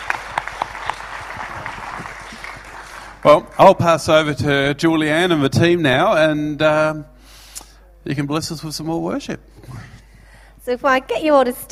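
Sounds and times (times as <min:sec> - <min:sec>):
congregation applause at a church service: 0:00.0 - 0:04.3
speech: 0:03.2 - 0:07.1, 0:08.0 - 0:09.8, 0:10.6 - 0:11.7.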